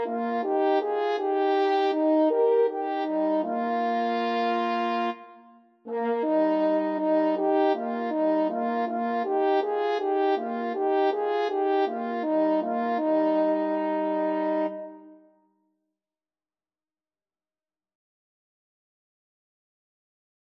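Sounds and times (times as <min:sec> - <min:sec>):
horn playing fifths: 0:00.0 - 0:15.2.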